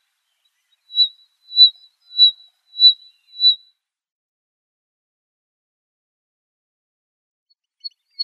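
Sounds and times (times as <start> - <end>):
longtail cricket song: 1.0 - 3.6.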